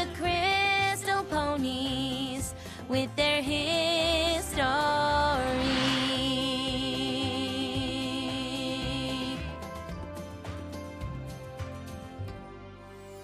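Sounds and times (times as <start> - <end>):
a cappella singing: 0.0 - 9.5.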